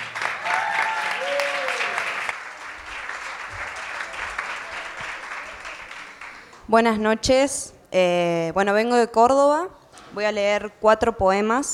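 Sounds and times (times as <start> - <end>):
audience applause: 0.0 - 6.6
speech: 6.7 - 11.7.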